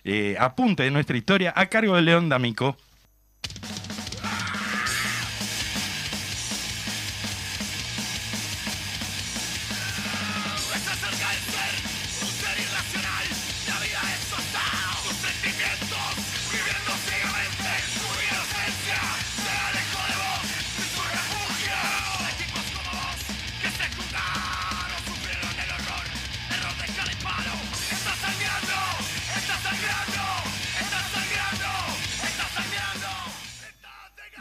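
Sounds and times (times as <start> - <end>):
speech: 0.0 - 2.9
rock song by a Uruguayan band: 3.5 - 33.7.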